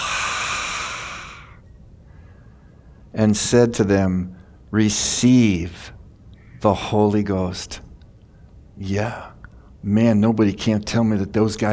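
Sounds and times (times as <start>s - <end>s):
person blowing out a long breath: 0.0s - 1.6s
speech: 3.1s - 6.0s, 6.6s - 7.9s, 8.8s - 11.7s.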